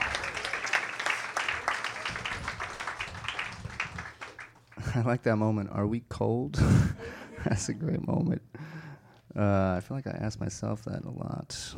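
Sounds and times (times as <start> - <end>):
round of applause from a crowd: 0.0 - 5.0
speech: 5.0 - 8.4, 9.4 - 11.7.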